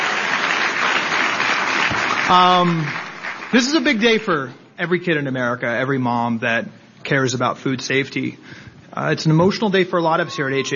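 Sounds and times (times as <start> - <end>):
audience applause: 0.0 - 4.1
speech: 2.3 - 10.7.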